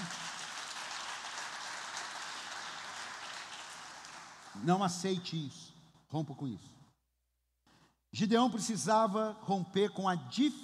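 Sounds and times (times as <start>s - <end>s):
crowd applause: 0.0s - 4.6s
speech: 4.6s - 6.8s, 8.1s - 10.6s.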